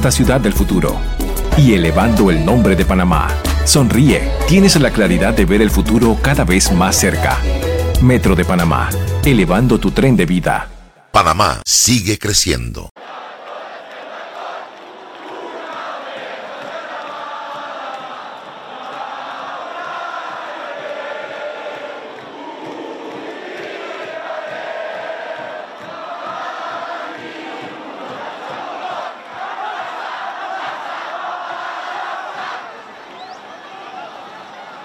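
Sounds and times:
speech: 0:00.0 - 0:12.9
celebrating crowd cheering in city streets: 0:13.0 - 0:34.8.

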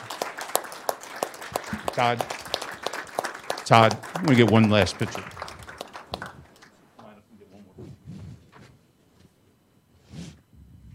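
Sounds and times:
scattered handclaps: 0:00.0 - 0:07.1
speech: 0:01.8 - 0:02.4, 0:03.7 - 0:05.4.

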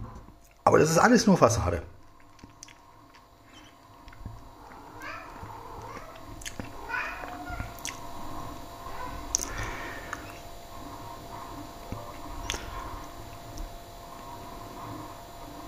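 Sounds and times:
speech: 0:00.7 - 0:02.0
fighting cats hissing: 0:03.4 - 0:13.2
cats fighting with drawn-out wavering yowls: 0:04.4 - 0:08.0, 0:08.8 - 0:10.4.

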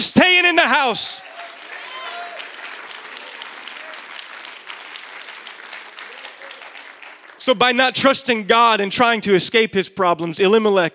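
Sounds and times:
speech: 0:00.2 - 0:01.3, 0:07.4 - 0:10.9
audience clapping: 0:00.4 - 0:08.3
audience shouting: 0:01.2 - 0:04.1.

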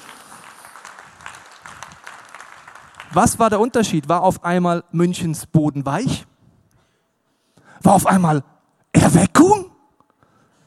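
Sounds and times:
audience clapping: 0:00.0 - 0:04.3
speech: 0:03.1 - 0:06.3, 0:07.8 - 0:08.5.

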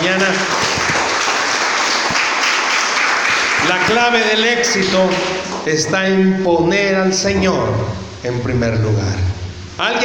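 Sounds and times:
audience applauding: 0:00.0 - 0:05.6
speech: 0:03.9 - 0:10.0.

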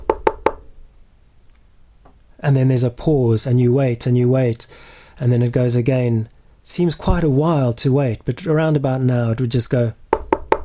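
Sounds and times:
speech: 0:02.4 - 0:10.0
knocks on a hard surface imitating a woodpecker drumming: 0:10.1 - 0:10.6.

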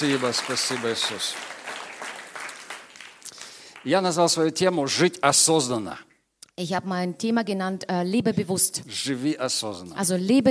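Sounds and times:
speech: 0:00.0 - 0:01.6, 0:03.8 - 0:10.4
audience applause: 0:00.0 - 0:04.4.

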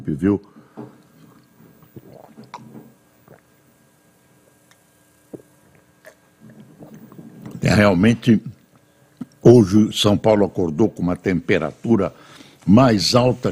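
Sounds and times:
speech: 0:00.0 - 0:00.9, 0:07.8 - 0:08.5, 0:09.5 - 0:13.5
person drinking a glass of water: 0:00.5 - 0:07.8, 0:08.5 - 0:09.4.

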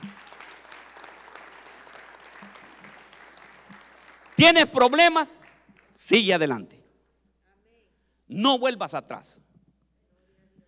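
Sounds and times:
audience applause: 0:00.0 - 0:06.0
speech: 0:04.4 - 0:05.4, 0:06.1 - 0:06.8, 0:08.3 - 0:09.4.

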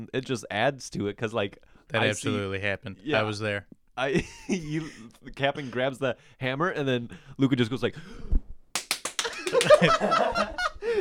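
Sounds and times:
speech: 0:00.0 - 0:08.4, 0:09.6 - 0:11.0
hands clapping: 0:08.8 - 0:10.0
laughter: 0:09.2 - 0:11.0.

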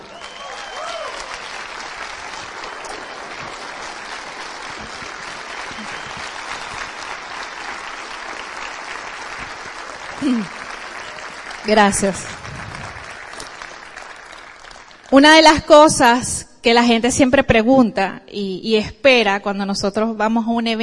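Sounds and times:
vocal whoop: 0:00.0 - 0:01.4
audience applause: 0:00.0 - 0:15.2
speech: 0:10.2 - 0:10.6, 0:11.7 - 0:12.4, 0:15.2 - 0:20.8.

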